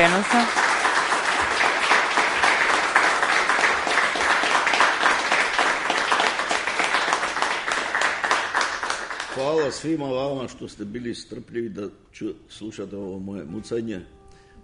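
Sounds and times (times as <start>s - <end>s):
audience applause at the close of an evening event: 0.0s - 9.6s
speech: 0.1s - 0.6s, 9.7s - 14.2s.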